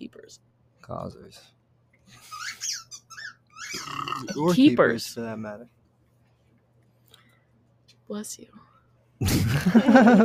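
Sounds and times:
speech: 0.0 - 2.4, 3.8 - 5.8, 8.1 - 10.2
burp: 3.7 - 4.4
laughter: 9.2 - 10.2.

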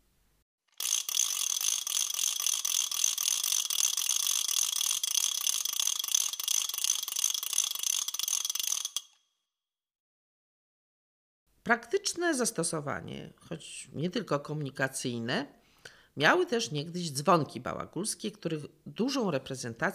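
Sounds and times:
wooden ratchet rattle being played: 0.7 - 9.2
speech: 11.7 - 15.6, 16.2 - 19.9.

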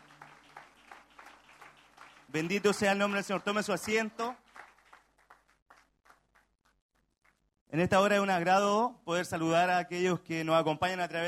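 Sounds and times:
audience applauding: 0.0 - 7.4
speech: 2.3 - 4.4, 7.8 - 11.2.

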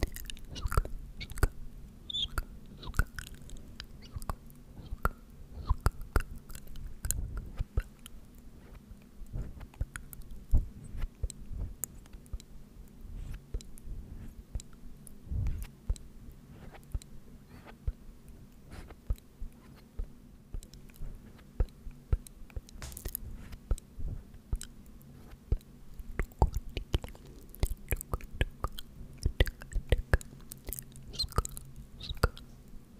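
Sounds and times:
tk and sk mouth sounds: 0.0 - 8.2, 25.5 - 32.5
low hum: 0.0 - 32.9.

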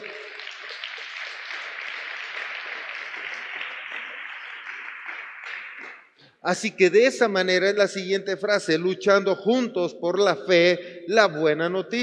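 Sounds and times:
audience applause: 0.0 - 6.2
speech: 6.4 - 12.0.

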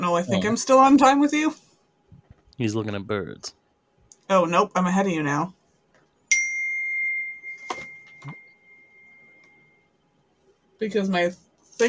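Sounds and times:
speech: 0.0 - 1.6, 2.6 - 3.6, 4.3 - 5.6, 10.8 - 11.8
bumps: 2.1 - 2.5
phone notification ding: 6.3 - 9.7.

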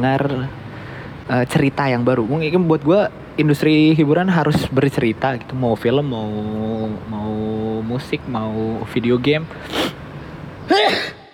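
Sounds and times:
speech: 0.0 - 0.6, 1.3 - 10.0, 10.7 - 11.2
coughing: 10.7 - 11.3.

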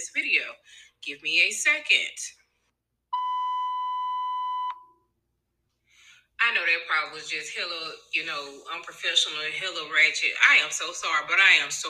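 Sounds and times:
speech: 0.0 - 2.4, 6.4 - 11.8
clothes dryer beeping: 3.2 - 4.9.

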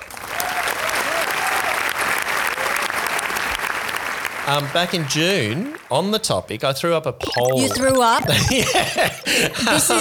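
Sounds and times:
applause sound effect: 0.0 - 5.9
speech: 4.5 - 9.9
laughter: 7.5 - 9.9.

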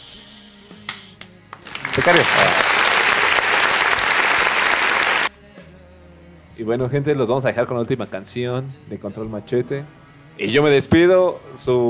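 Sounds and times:
applause: 1.5 - 5.3
speech: 2.0 - 2.8, 6.6 - 11.8.

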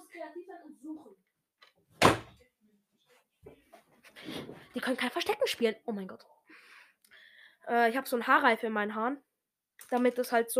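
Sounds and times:
door being closed: 2.0 - 2.4
speech: 4.7 - 6.4, 7.7 - 10.5.

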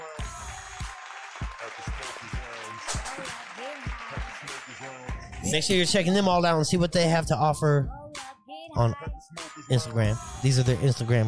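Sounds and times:
audience applause: 0.1 - 5.2
speech: 4.8 - 8.0, 8.8 - 9.0, 9.7 - 11.2.

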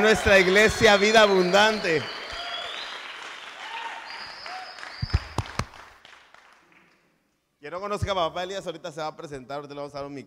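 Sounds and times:
speech: 0.0 - 2.2, 7.7 - 10.2
applause: 0.0 - 7.1.

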